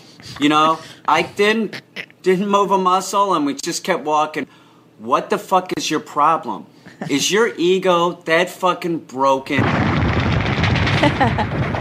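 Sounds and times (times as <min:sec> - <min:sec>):
speech: 0:00.2 - 0:10.0, 0:11.0 - 0:11.6
machine gun fire sound effect: 0:09.6 - 0:11.7.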